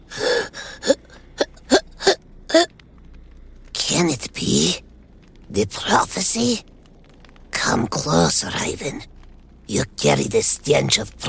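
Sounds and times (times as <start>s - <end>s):
rapid-fire hiccuping breath: 0.1s - 2.7s
speech: 5.6s - 6.7s, 7.7s - 9.1s, 9.7s - 11.2s.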